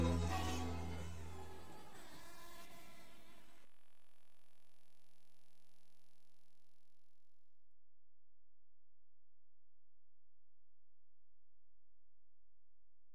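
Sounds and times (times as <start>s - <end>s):
instrumental music: 0.0s - 2.0s.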